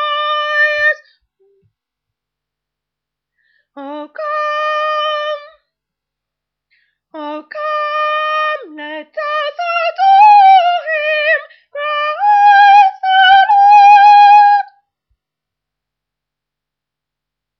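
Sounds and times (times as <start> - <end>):
soprano singing: 0.0 - 1.2, 3.8 - 5.7, 7.1 - 14.8.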